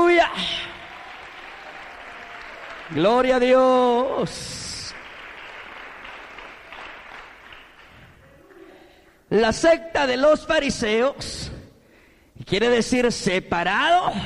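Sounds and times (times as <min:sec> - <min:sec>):
audience applauding: 0:00.7 - 0:08.2
speech: 0:02.9 - 0:04.6, 0:09.3 - 0:11.6, 0:12.4 - 0:14.2.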